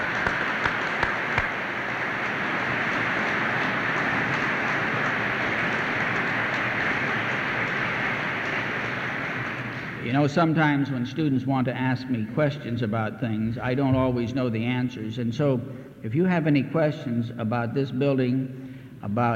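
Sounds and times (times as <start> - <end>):
audience applause for a building's architect at a dedication: 0.0 - 10.1
speech: 10.1 - 19.3.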